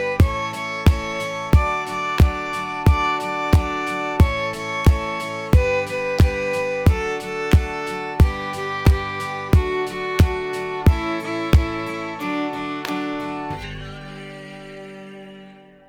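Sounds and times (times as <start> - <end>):
fiddle hoedown played in reverse: 0.0 - 15.6.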